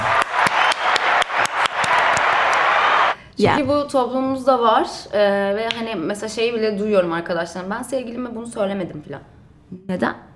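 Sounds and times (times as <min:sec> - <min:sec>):
audience applause: 0:00.0 - 0:03.2
speech: 0:03.4 - 0:10.3.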